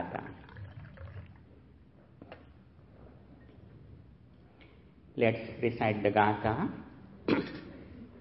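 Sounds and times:
water poured into an empty cup in a merit-transfer ritual: 0:00.0 - 0:01.6
speech: 0:05.2 - 0:06.9.

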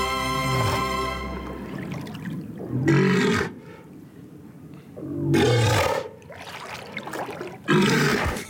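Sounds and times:
walrus bellowing: 0:00.1 - 0:01.7, 0:02.6 - 0:03.9, 0:04.9 - 0:06.3
faint water sounds: 0:00.1 - 0:08.4.

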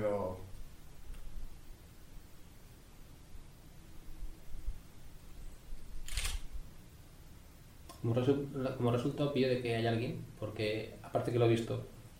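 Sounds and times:
steady low hiss: 0:00.0 - 0:12.1
faint camera lens tick: 0:06.0 - 0:06.5
speech: 0:08.0 - 0:12.0.

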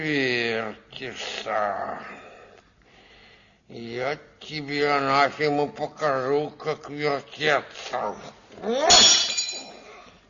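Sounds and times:
speech: 0:00.0 - 0:02.2, 0:03.7 - 0:09.2
glass carafe smashing: 0:08.9 - 0:09.8
tinkling glass shards: 0:08.9 - 0:09.9.

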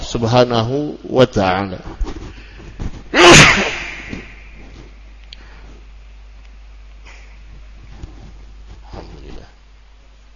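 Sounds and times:
speech: 0:00.1 - 0:02.1
person sneezing: 0:03.1 - 0:04.4.

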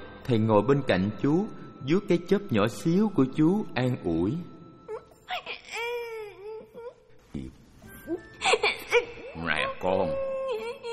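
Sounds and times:
speech: 0:00.3 - 0:04.5
little boy novice at a Buddhist temple crying: 0:04.9 - 0:07.1, 0:08.1 - 0:09.4, 0:10.0 - 0:10.9.

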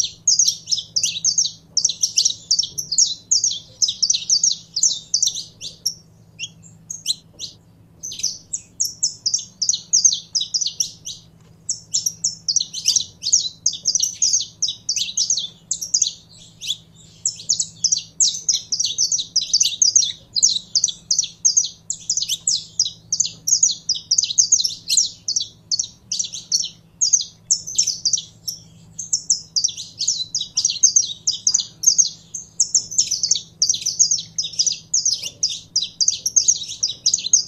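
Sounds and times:
canary singing high chirps and trills: 0:00.0 - 0:37.4
faint hum: 0:00.0 - 0:37.4.

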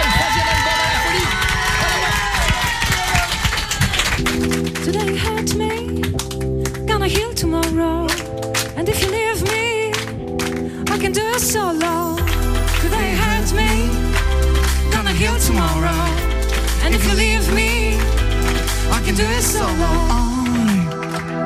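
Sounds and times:
audience applauding and cheering: 0:00.0 - 0:06.9, 0:07.6 - 0:21.4.

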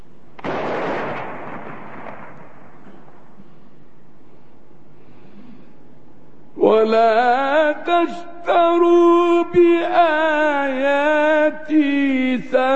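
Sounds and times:
imsak cannon firing to mark the start of the Ramadan fast: 0:00.4 - 0:03.4
speech: 0:06.7 - 0:12.7.

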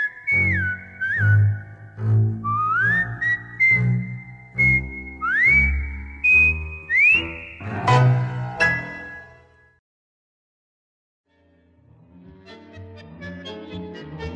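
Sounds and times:
singer whistling a melody: 0:00.0 - 0:07.9.

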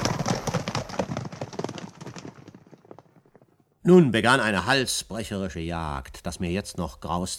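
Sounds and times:
galloping horse hooves: 0:00.0 - 0:03.8
speech: 0:03.9 - 0:07.3.

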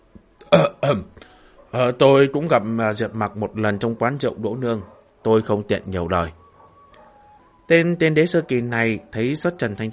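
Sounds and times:
hunchbacked person coughing dryly: 0:00.5 - 0:01.1
speech: 0:00.9 - 0:01.1, 0:01.7 - 0:06.4, 0:07.7 - 0:09.9.

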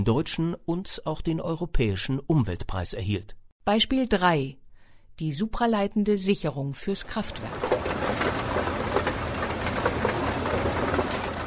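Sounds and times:
speech: 0:00.0 - 0:04.6, 0:05.2 - 0:08.7
coal chunks crackling and rattling through a grinding mill: 0:07.1 - 0:11.4
continuous low mechanical rumble: 0:07.3 - 0:11.4.

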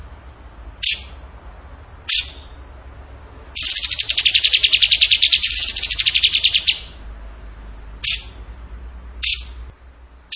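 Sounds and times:
bird chattering: 0:00.8 - 0:01.2, 0:02.1 - 0:02.6, 0:03.6 - 0:07.0, 0:08.0 - 0:08.4, 0:09.2 - 0:09.6.

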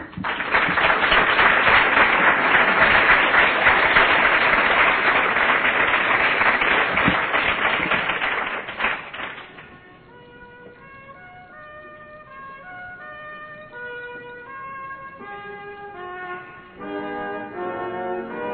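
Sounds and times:
conference audience applause: 0:00.0 - 0:09.7.

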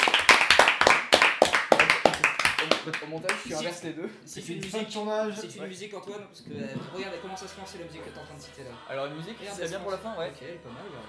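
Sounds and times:
a few people clapping at the end of a show: 0:00.0 - 0:03.7
speech: 0:02.8 - 0:11.0.

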